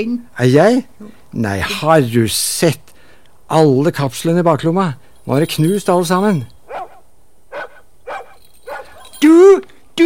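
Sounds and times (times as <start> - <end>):
speech: 0.0 - 2.9, 3.5 - 6.5, 9.2 - 10.0
dog barking: 6.7 - 9.1.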